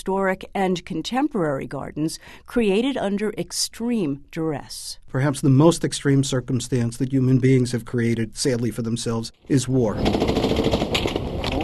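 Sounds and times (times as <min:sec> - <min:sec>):
speech: 0:00.0 - 0:10.8
heavy machine gun fire in Iraq: 0:10.0 - 0:11.6.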